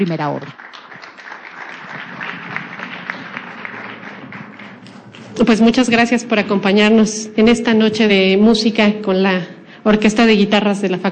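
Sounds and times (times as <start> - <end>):
speech: 0.0 - 0.6, 5.4 - 11.1
audience applause for guitar orchestra: 0.5 - 6.2.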